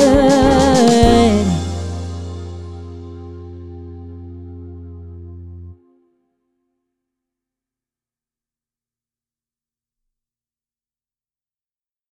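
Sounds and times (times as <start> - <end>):
Sukkot song vocals: 0.0 - 3.4.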